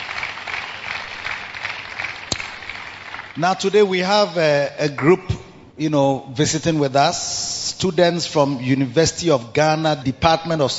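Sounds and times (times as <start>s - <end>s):
single sharp clap: 0.0s - 3.3s
audience clapping: 0.0s - 3.8s
speech: 3.4s - 10.7s.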